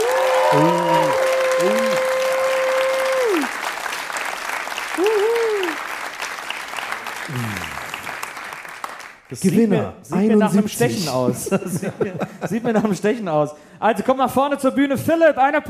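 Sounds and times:
audience applause: 0.0s - 9.7s
speech: 0.5s - 2.0s, 9.3s - 15.6s
laughter: 10.6s - 13.2s.

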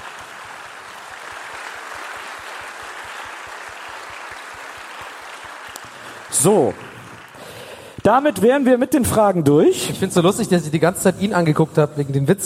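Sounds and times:
audience applause: 0.0s - 8.0s
speech: 6.4s - 6.9s, 8.1s - 12.4s.

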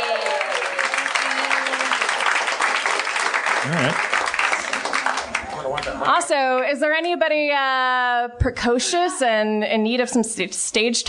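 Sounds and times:
audience applause: 0.0s - 6.1s
speech: 3.6s - 4.2s, 6.0s - 11.0s.

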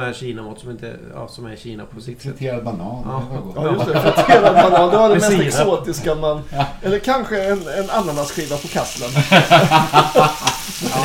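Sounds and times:
speech: 0.0s - 11.0s
laughter: 3.6s - 5.6s, 6.4s - 11.0s
pork belly sizzling in a frying pan: 7.4s - 11.0s.

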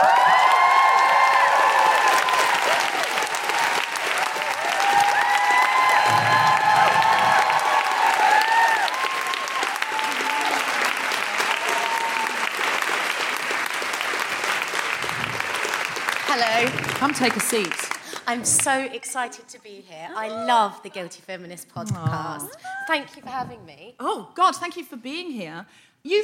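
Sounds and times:
live audience cheering and applause: 0.0s - 18.7s
speech: 17.1s - 26.2s.

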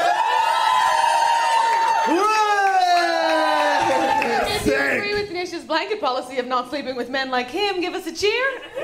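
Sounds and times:
audience cheering and whooping: 0.0s - 5.2s
speech: 4.6s - 8.8s.

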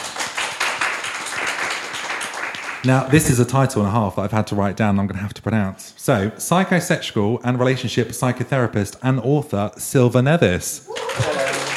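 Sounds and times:
crowd applauding: 0.0s - 2.9s, 10.9s - 11.7s
speech: 2.8s - 11.6s.

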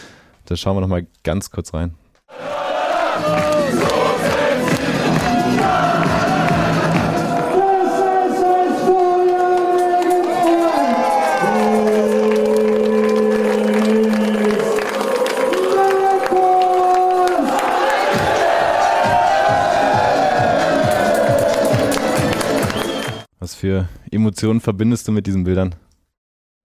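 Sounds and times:
speech: 0.5s - 2.0s, 3.2s - 4.4s, 23.6s - 25.9s
crowd celebrating at promotion party: 2.3s - 23.3s.

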